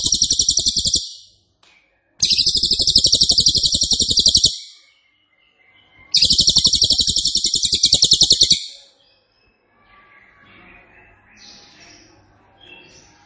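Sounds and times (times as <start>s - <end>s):
trill song: 0.0s - 1.3s, 2.2s - 4.8s, 6.2s - 8.8s.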